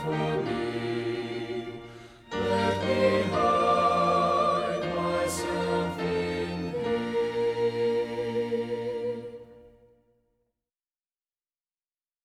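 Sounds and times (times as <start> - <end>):
music: 0.0 - 10.5.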